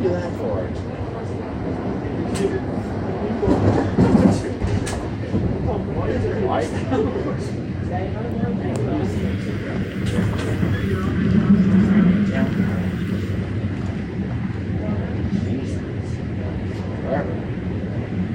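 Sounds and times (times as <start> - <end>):
indistinct voices murmuring: 0.0 - 18.2
train running on rails: 0.0 - 18.3
laughter: 6.1 - 7.6.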